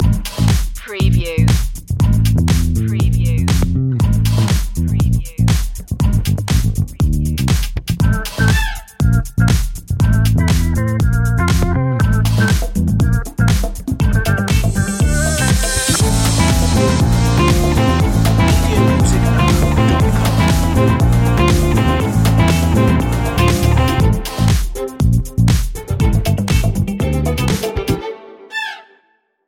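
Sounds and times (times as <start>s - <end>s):
salsa funk music: 0.0s - 28.1s.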